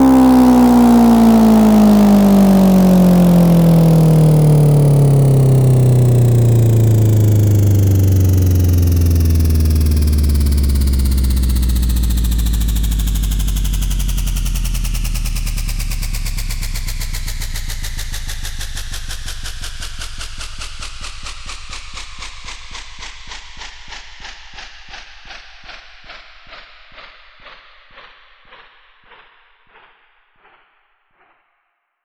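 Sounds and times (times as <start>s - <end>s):
bass house downer effect: 0.0s - 23.3s.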